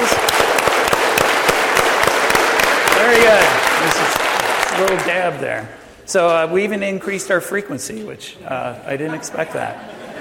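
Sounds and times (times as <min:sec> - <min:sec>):
crowd clapping in sync: 0:00.0 - 0:05.6
speech: 0:04.8 - 0:10.0
laughter: 0:08.9 - 0:10.2.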